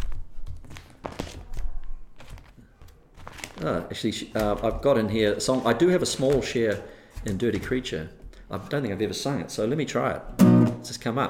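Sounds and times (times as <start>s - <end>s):
pages of a songbook turning: 0.0s - 8.4s
speech: 3.6s - 11.2s.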